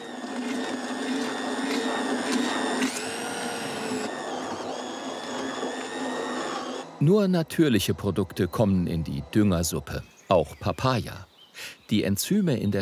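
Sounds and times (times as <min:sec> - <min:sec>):
blender puréeing freshly caught fish for fermented fertilizer: 0:00.0 - 0:09.7
speech: 0:07.0 - 0:12.8.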